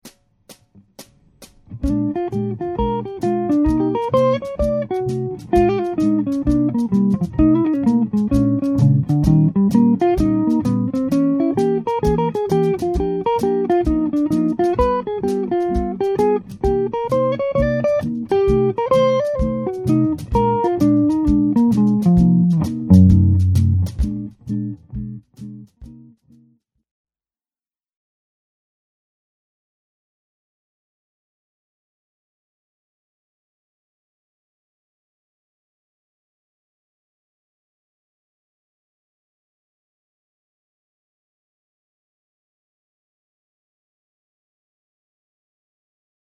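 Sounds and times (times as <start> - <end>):
blues music: 0.9 - 26.1.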